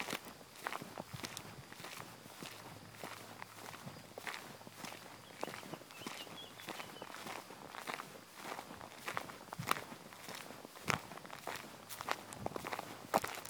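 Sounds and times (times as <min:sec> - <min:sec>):
footsteps crunching on a forest walk in Bergerac, France: 0:00.0 - 0:13.4
faint bird chirping in a forest: 0:04.9 - 0:07.3.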